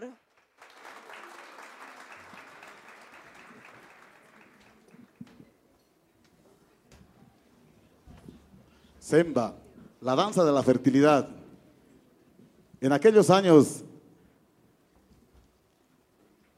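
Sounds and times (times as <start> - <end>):
audience applause: 0.0 - 5.3
speech: 9.1 - 11.4, 12.8 - 13.8.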